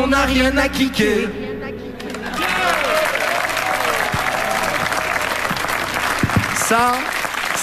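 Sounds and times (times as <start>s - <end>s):
speech: 0.0s - 1.4s, 6.7s - 7.6s
audience applause: 2.0s - 7.6s.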